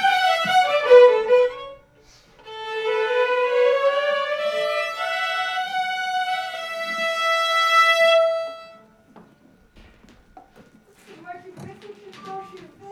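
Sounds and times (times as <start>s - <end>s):
violins: 0.0s - 9.3s.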